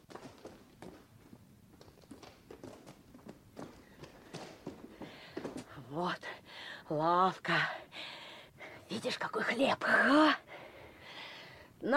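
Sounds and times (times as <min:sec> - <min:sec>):
footsteps of children running to the shop: 0:00.0 - 0:05.7
speech: 0:06.0 - 0:07.8, 0:08.9 - 0:10.4.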